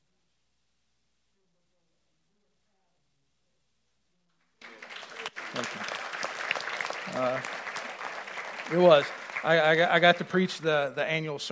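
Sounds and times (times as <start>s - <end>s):
audience clapping: 4.6s - 11.2s
speech: 7.2s - 7.6s, 8.7s - 11.4s.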